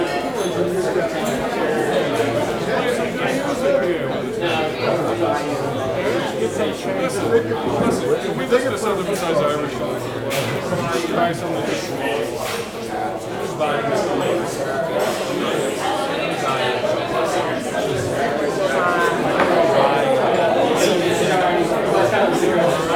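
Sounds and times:
busy pub voices walla: 0.0 - 22.9.

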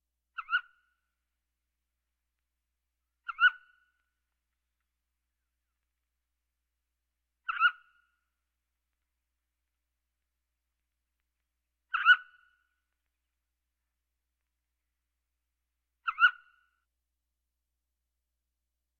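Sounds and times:
birds: 0.3 - 0.9, 3.2 - 4.1, 7.4 - 8.2, 11.9 - 12.7, 16.0 - 16.7.

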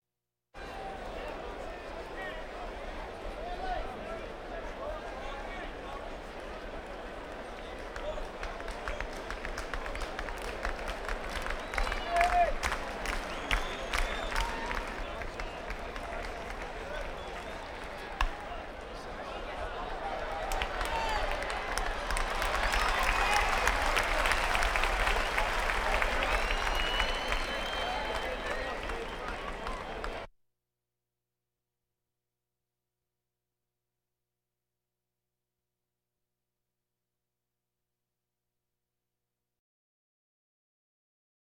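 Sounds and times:
crowds: 0.6 - 30.3.

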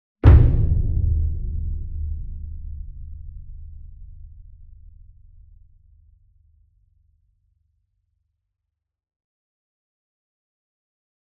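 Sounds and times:
40 inch concert bass drum flam with soft beater: 0.2 - 6.0.

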